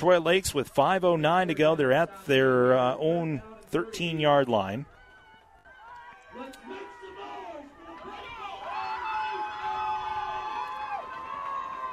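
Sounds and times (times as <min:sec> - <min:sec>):
speech: 0:00.0 - 0:05.0
football fans cheering in stadium: 0:03.8 - 0:11.9.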